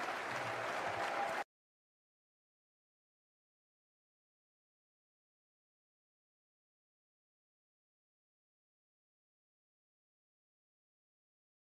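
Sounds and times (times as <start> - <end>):
crowd audience applause: 0.0 - 1.5.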